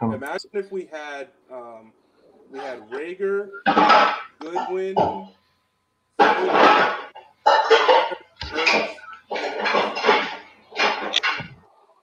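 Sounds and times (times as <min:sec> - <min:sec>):
speech: 0:00.0 - 0:05.4, 0:06.2 - 0:07.0
dishes clattering as someone washes them: 0:03.7 - 0:05.3, 0:06.2 - 0:11.6.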